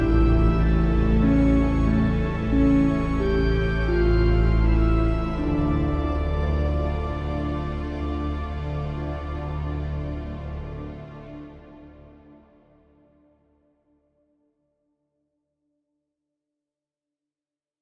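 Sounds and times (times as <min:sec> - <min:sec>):
organ melody: 0:00.0 - 0:11.0.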